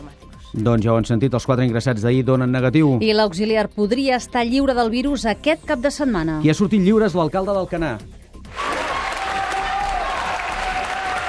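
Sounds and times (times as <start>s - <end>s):
speech: 0.5s - 8.6s
neighbours applauding: 8.5s - 11.2s.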